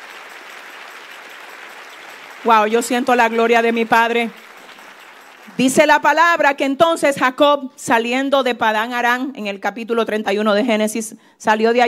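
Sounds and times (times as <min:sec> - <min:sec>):
applause: 0:00.0 - 0:06.4
speech: 0:02.4 - 0:04.4, 0:05.6 - 0:11.8.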